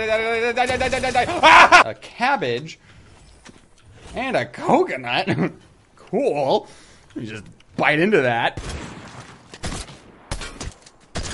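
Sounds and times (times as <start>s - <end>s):
speech: 0.0s - 3.0s, 4.1s - 8.8s
laughter: 1.1s - 1.8s
video game shotgun blasts: 8.6s - 11.3s.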